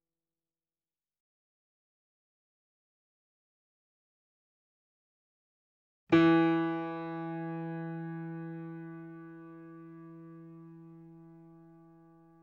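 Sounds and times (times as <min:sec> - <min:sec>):
grand piano notes C3 E3 A3: 0:06.2 - 0:12.0.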